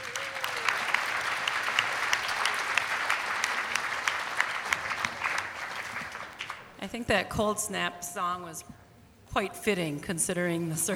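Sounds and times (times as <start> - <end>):
audience applause: 0.0 - 6.8
speech: 6.8 - 10.9.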